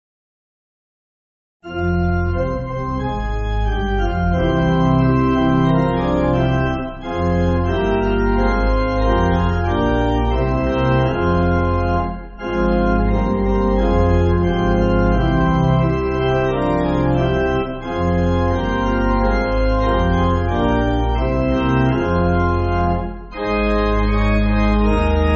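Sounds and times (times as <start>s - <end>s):
pipe organ backing for churches: 1.7s - 25.3s.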